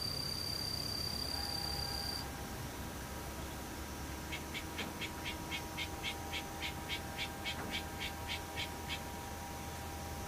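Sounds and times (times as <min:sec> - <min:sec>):
bright chirping call: 0:00.0 - 0:02.3, 0:04.3 - 0:09.2
daytime insects buzzing: 0:00.0 - 0:10.2.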